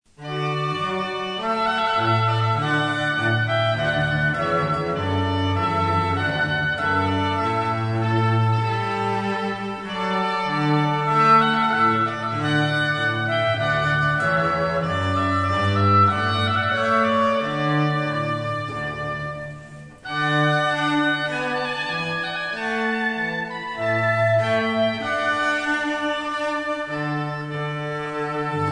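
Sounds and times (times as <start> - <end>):
cello trio: 0.1 - 28.6.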